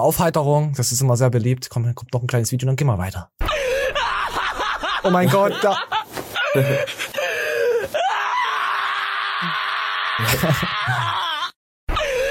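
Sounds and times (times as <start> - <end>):
speech: 0.0 - 4.0, 5.0 - 7.2, 10.2 - 11.2
laughter: 3.5 - 7.7, 8.7 - 12.2
large dog screaming during nail trimming: 8.0 - 11.5.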